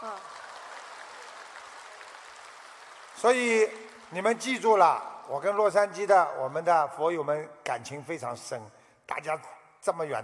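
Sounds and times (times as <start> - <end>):
crowd clapping: 0.0 - 5.4
speech: 3.2 - 10.2.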